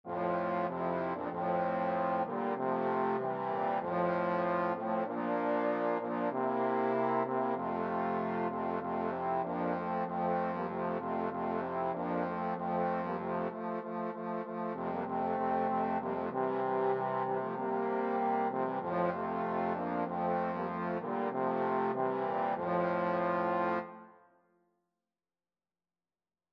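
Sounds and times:
trombone quartet: 0.1 - 24.0.

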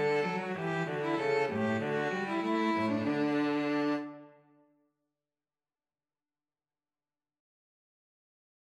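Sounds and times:
string trio playing: 0.0 - 4.4.

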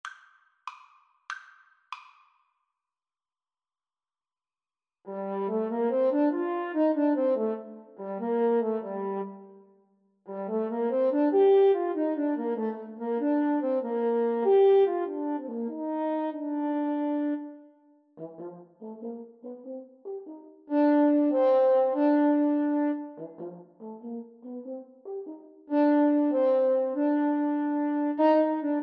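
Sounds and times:
french horn duet: 5.1 - 9.6, 10.3 - 28.8.

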